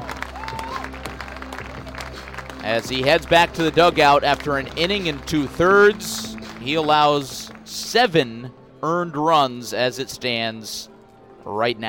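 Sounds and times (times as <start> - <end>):
baseball crowd applause at TD Ballpark: 0.0 - 7.9
speech: 2.7 - 11.8.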